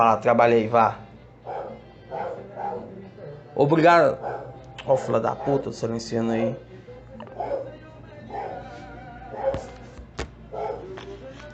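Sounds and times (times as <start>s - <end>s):
speech: 0.0s - 1.0s, 3.6s - 6.7s
dog barking: 1.4s - 3.4s, 4.2s - 4.6s, 5.3s - 5.8s, 7.3s - 8.7s, 9.3s - 9.8s, 10.5s - 11.0s.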